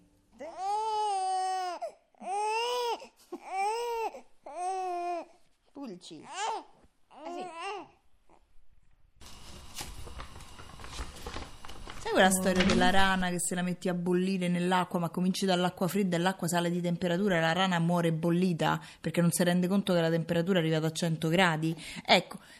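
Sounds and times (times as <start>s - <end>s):
young infant crying and babbling: 0.4s - 5.4s, 6.1s - 8.4s
speech: 6.0s - 6.6s, 12.2s - 22.5s
rustling and scuffling: 9.3s - 13.2s.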